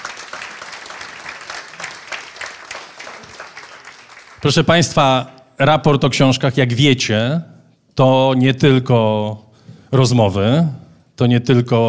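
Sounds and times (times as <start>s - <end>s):
audience applause: 0.0s - 4.6s
speech: 4.4s - 11.8s.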